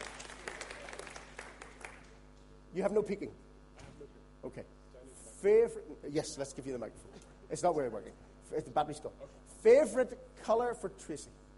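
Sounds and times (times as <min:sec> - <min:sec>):
applause for a quiz team: 0:00.0 - 0:02.3
speech: 0:02.8 - 0:03.4, 0:04.4 - 0:04.8, 0:05.4 - 0:11.4.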